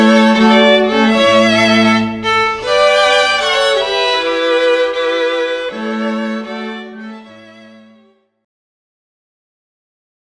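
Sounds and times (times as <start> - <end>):
classical string quartet playing: 0.0 - 8.2.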